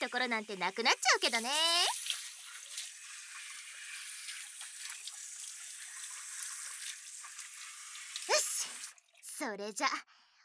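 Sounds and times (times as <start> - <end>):
shower water running: 0.0 - 9.3
speech: 0.1 - 2.0, 9.4 - 10.2.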